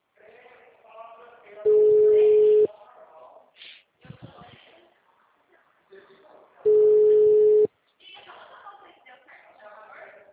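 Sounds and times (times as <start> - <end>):
quiet talking: 0.0 - 10.3
telephone ringback tone while a call is placed: 1.7 - 2.7, 6.7 - 7.7.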